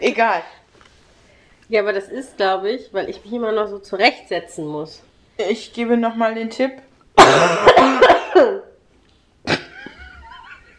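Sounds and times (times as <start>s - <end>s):
speech: 0.0s - 0.6s, 1.7s - 8.7s
coughing: 7.2s - 8.8s, 9.4s - 10.7s.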